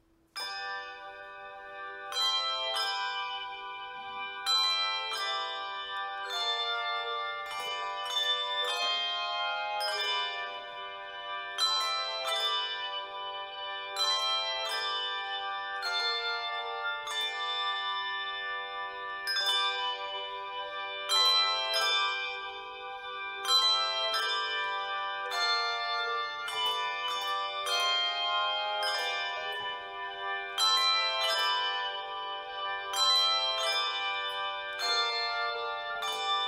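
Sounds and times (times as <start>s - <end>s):
carillon: 0.0s - 36.4s.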